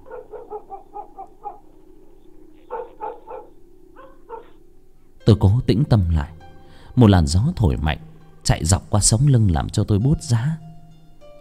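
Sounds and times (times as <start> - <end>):
dogs barking in the distance from a village on a summer night: 0.0 - 5.2
low steady hum: 0.0 - 9.0
speech: 5.3 - 6.4, 7.0 - 10.7.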